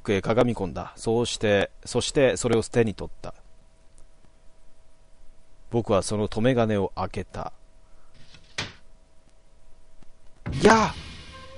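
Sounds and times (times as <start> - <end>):
speech: 0.0 - 3.4, 5.7 - 7.6, 10.6 - 11.1
faint hiss: 0.0 - 11.5
fusuma Japanese sliding paper door opening suddenly: 8.2 - 8.8.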